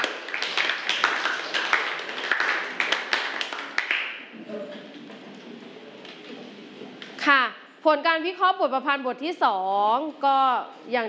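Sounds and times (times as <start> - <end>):
classroom applause for a student group: 0.0 - 4.2
speech: 7.9 - 11.0.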